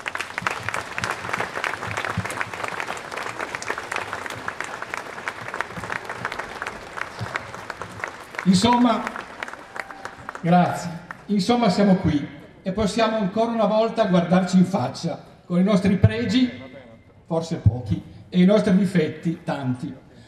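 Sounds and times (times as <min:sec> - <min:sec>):
audience applause: 0:00.0 - 0:11.3
speech: 0:08.4 - 0:09.2, 0:10.4 - 0:16.6, 0:17.3 - 0:20.0.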